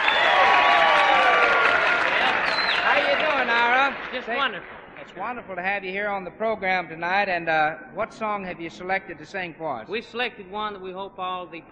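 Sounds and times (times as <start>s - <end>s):
audience applause at the Grand Ole Opry: 0.0s - 5.3s
speech: 4.1s - 11.6s.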